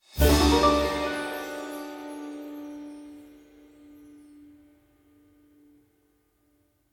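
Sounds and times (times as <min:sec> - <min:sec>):
small win sound: 0:00.2 - 0:02.4.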